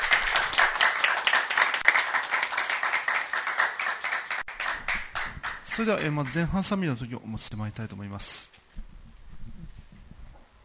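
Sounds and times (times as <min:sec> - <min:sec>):
audience clapping: 0:00.0 - 0:06.8
speech: 0:05.8 - 0:08.5.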